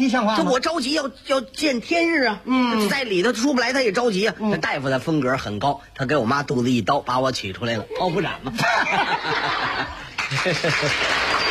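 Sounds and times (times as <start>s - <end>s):
speech: 0.0s - 11.3s
audience laughter: 8.6s - 11.5s
audience applause: 10.1s - 11.5s.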